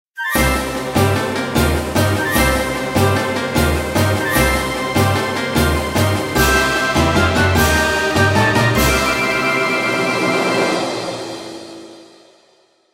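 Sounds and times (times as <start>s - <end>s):
orchestral jingle: 0.4s - 12.3s.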